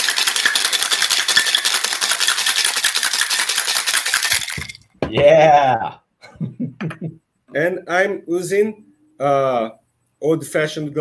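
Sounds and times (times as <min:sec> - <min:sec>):
cocktail shaker full of ice being shaken: 0:00.0 - 0:04.9
speech: 0:05.1 - 0:06.0, 0:06.8 - 0:10.9.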